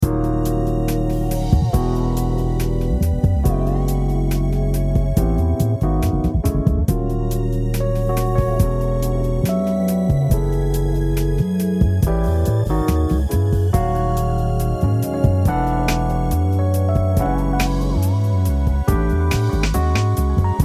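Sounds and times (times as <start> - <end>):
drum kit: 0.0 - 20.6.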